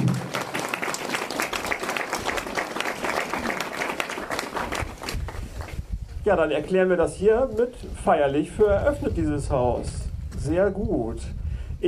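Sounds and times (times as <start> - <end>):
audience applause: 0.0 - 5.7
speech: 6.3 - 11.8.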